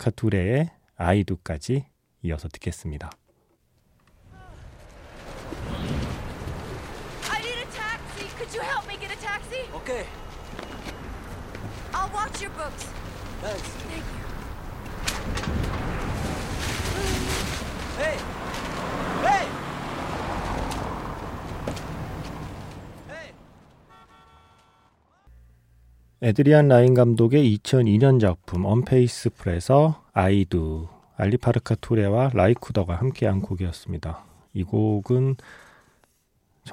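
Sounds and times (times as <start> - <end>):
speech: 0.0 - 3.2, 9.8 - 10.2, 12.0 - 14.2, 18.0 - 19.6, 26.2 - 35.6
strong gusting wind: 4.2 - 9.6, 11.0 - 23.1.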